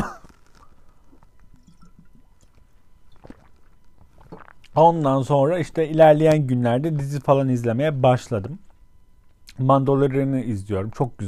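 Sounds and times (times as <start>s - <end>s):
person drinking water: 0.2s - 4.8s
speech: 4.8s - 8.6s, 9.6s - 11.2s.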